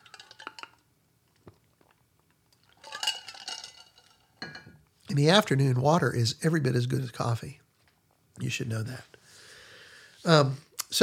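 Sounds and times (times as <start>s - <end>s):
glass clinking: 0.0s - 0.8s, 2.8s - 4.8s
speech: 5.1s - 7.6s, 8.4s - 9.1s, 10.2s - 11.0s.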